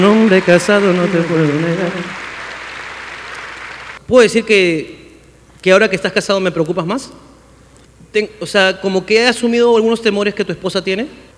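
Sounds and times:
speech: 0.0s - 2.2s, 4.1s - 5.0s, 5.6s - 7.3s, 8.1s - 11.3s
applause: 0.0s - 4.0s.

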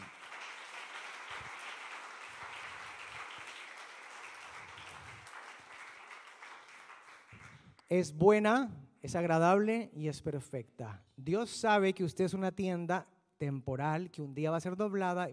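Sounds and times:
audience applause: 0.0s - 7.7s
speech: 7.9s - 15.3s.

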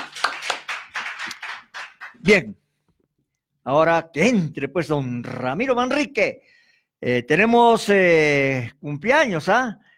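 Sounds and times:
applause: 0.0s - 2.4s
speech: 2.2s - 2.6s, 3.6s - 9.8s.

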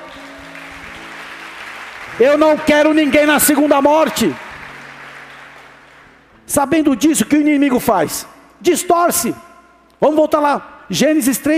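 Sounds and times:
audience applause: 0.0s - 6.3s
speech: 2.2s - 4.4s, 6.5s - 11.5s.

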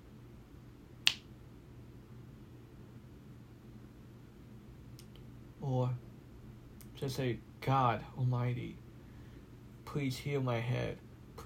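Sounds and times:
finger snapping: 1.0s - 1.3s
speech: 7.0s - 8.8s, 10.0s - 11.4s.

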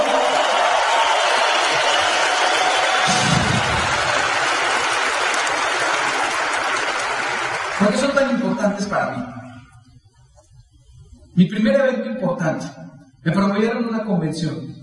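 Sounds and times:
audience applause: 0.0s - 8.4s
speech: 8.6s - 9.2s, 11.4s - 14.7s.

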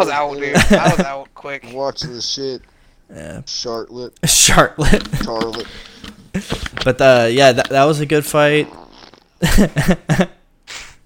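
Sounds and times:
speech: 0.0s - 8.8s, 9.4s - 10.4s
fake fart noise made by mouth: 8.6s - 9.4s.

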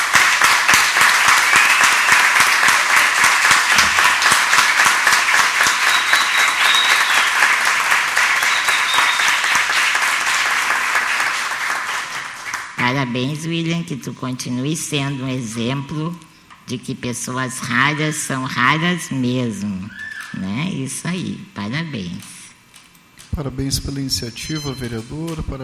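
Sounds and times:
large crowd applauding: 0.0s - 12.8s
speech: 13.2s - 22.4s, 23.4s - 25.6s.

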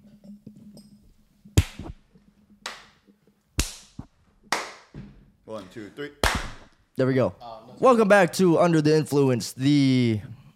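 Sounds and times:
sharp hand claps: 1.6s - 2.0s, 2.6s - 3.0s, 3.6s - 4.9s, 6.2s - 6.7s
speech: 5.5s - 6.4s, 7.0s - 10.3s.

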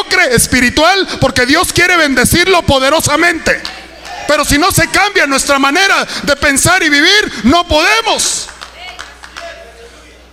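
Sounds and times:
speech: 0.2s - 8.5s
scattered claps: 8.3s - 9.6s.

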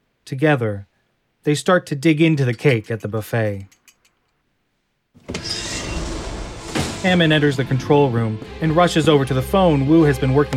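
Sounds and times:
speech: 0.3s - 3.8s, 7.0s - 10.5s
sliding door whirring shut: 5.2s - 8.0s
high whine: 5.3s - 8.7s.

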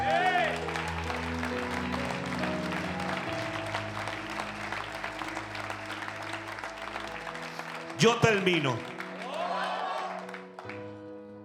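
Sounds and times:
audience applause: 0.0s - 11.1s
speech: 8.0s - 8.9s.

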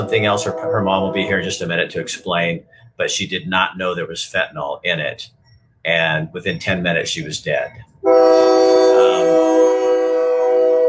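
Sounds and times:
train horn blaring as a train goes by: 0.0s - 1.9s, 8.0s - 10.8s
speech: 0.0s - 9.8s.

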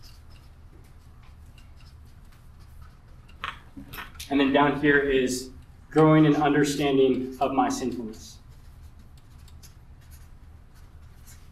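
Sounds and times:
person writing words on a board during a talk: 0.0s - 3.7s, 7.8s - 11.5s
speech: 4.3s - 8.4s.

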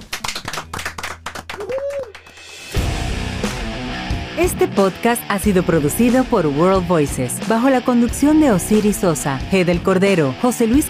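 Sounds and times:
applause: 0.0s - 2.8s
speech: 4.4s - 10.8s.

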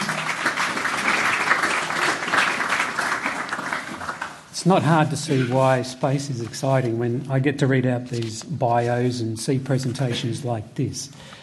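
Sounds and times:
audience applause: 0.0s - 4.5s
speech: 4.6s - 11.4s.

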